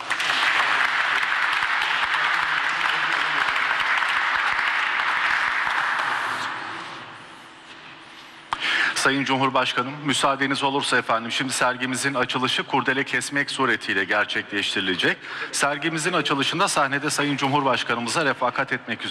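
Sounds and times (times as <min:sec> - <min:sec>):
audience applause: 0:00.0 - 0:06.7
speech: 0:09.0 - 0:19.0.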